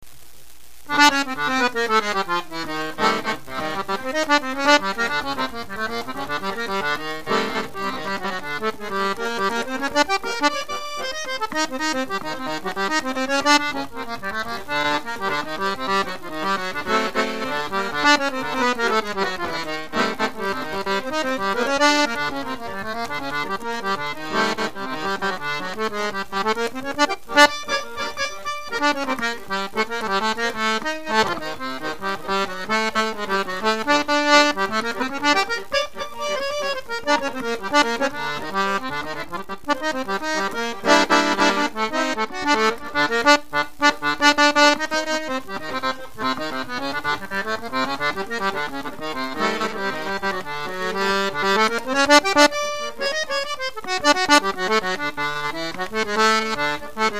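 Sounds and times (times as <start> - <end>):
accordion playing chorinho pe de serra: 0.9 - 57.1.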